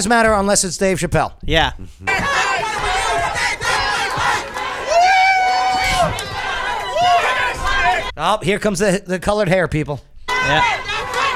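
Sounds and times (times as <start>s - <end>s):
speech: 0.0s - 2.3s, 8.2s - 10.9s
protest crowd yelling: 2.1s - 8.1s, 10.3s - 11.3s.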